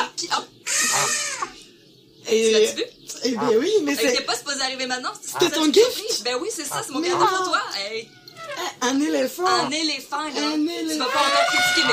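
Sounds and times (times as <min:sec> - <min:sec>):
goose honking: 0:00.7 - 0:01.6, 0:03.4 - 0:03.6, 0:05.2 - 0:05.8, 0:06.6 - 0:08.0, 0:09.4 - 0:09.8, 0:10.9 - 0:11.9
speech: 0:02.3 - 0:11.9.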